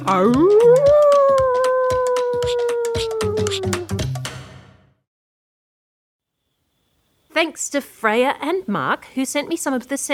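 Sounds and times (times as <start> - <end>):
human voice imitating a dingo howl: 0.0 - 4.0
speech: 0.1 - 1.0, 7.4 - 10.1.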